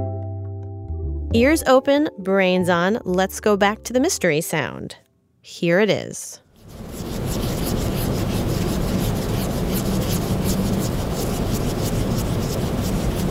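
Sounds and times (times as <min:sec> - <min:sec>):
speech: 0:01.3 - 0:06.4
cotton swab rubbed against a surface: 0:06.5 - 0:13.2.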